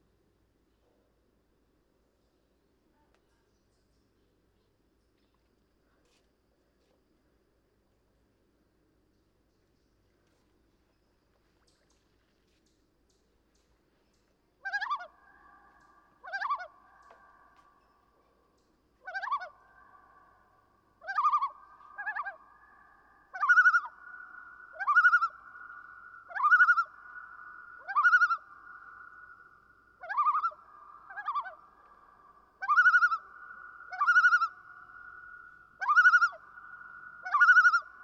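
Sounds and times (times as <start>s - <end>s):
common loon calling: 14.6s - 17.8s, 19.0s - 38.0s.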